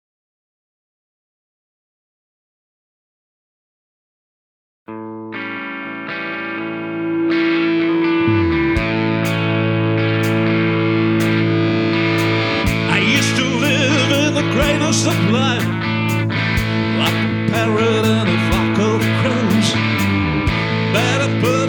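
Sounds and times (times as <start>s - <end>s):
rock music stereo mix: 4.9s - 21.6s.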